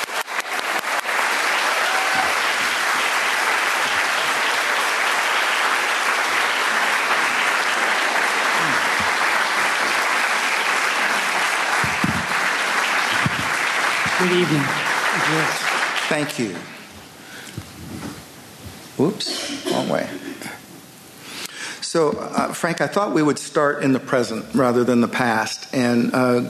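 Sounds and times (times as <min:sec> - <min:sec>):
audience applause welcoming two guests: 0:00.0 - 0:16.9
speech: 0:14.2 - 0:16.8, 0:19.0 - 0:20.2, 0:22.0 - 0:26.4.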